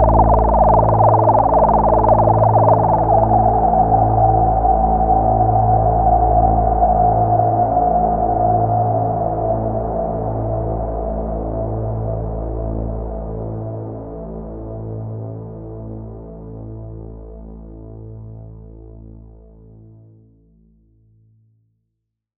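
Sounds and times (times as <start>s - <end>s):
Roland SH 01A synthesizer bass: 0.0s - 15.6s.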